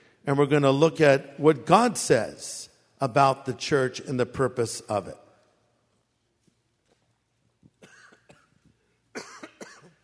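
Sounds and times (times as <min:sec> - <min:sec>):
speech: 0:00.2 - 0:05.2
person coughing after choking on drinking water: 0:07.8 - 0:08.6, 0:09.2 - 0:10.0.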